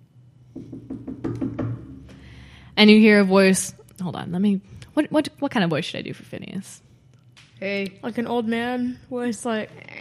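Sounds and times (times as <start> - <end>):
knocking on a door: 0.5 - 2.2
speech: 2.8 - 6.9, 7.6 - 9.9.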